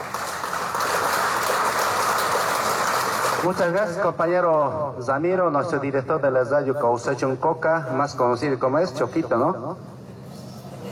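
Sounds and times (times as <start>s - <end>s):
applause: 0.0s - 4.0s
speech: 3.4s - 9.9s.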